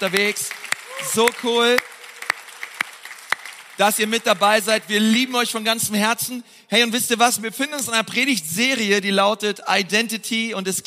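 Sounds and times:
speech: 0.0 - 1.9, 3.8 - 10.8
audience applause: 0.0 - 5.3.

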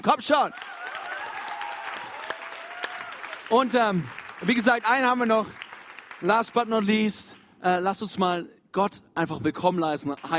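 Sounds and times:
speech: 0.0 - 0.8, 3.5 - 5.6, 6.2 - 10.3
crowd applause: 0.4 - 6.9.

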